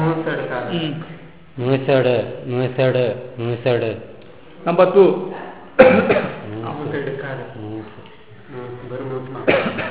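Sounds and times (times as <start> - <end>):
speech: 0.2 - 9.8
person coughing: 5.8 - 6.4, 9.5 - 9.8.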